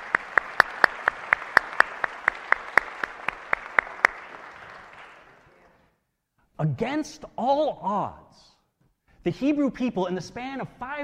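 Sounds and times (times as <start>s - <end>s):
audience applause: 0.0s - 5.9s
speech: 6.6s - 8.5s, 9.2s - 11.0s.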